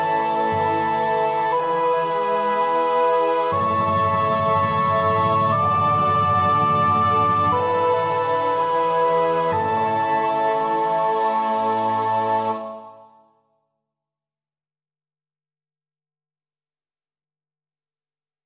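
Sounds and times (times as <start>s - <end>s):
soprano voice with orchestra in choir part practice: 0.0s - 13.3s.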